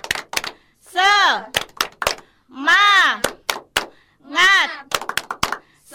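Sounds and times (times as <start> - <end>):
group rhythmic hand clapping: 0.0 - 0.7, 1.4 - 2.3, 3.1 - 5.8
speech: 1.3 - 1.6.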